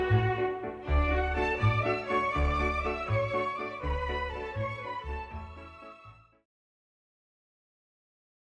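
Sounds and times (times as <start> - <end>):
violins: 0.0 - 6.3.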